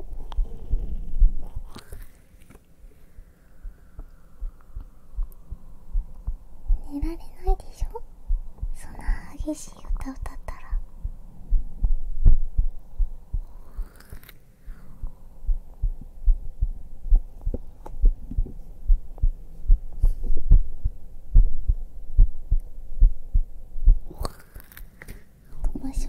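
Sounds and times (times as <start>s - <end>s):
heartbeat: 0.0s - 1.8s, 3.6s - 13.9s, 15.0s - 24.2s
faint hum: 0.0s - 26.0s
speech: 9.5s - 10.3s.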